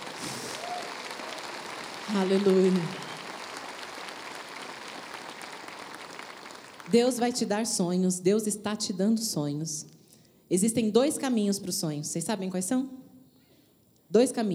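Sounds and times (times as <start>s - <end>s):
audience applause: 0.0s - 7.0s
speech: 2.1s - 3.0s, 6.9s - 13.0s, 14.1s - 14.5s.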